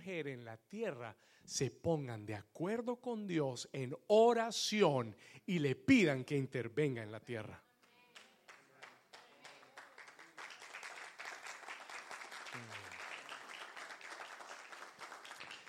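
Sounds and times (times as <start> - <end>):
speech: 0.0 - 7.7
weak audience applause: 8.1 - 15.6.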